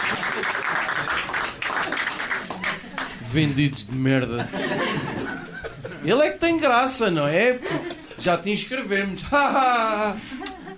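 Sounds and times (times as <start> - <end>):
crowd applauding: 0.0 - 3.3
laughter: 1.8 - 3.6, 4.2 - 6.1, 7.5 - 8.2, 9.1 - 10.7
speech: 3.3 - 4.8, 6.0 - 10.4.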